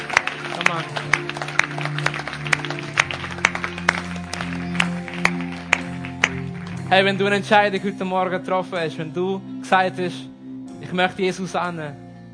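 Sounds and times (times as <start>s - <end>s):
audience applauding: 0.0s - 7.3s
speech: 6.9s - 10.3s, 10.9s - 12.0s.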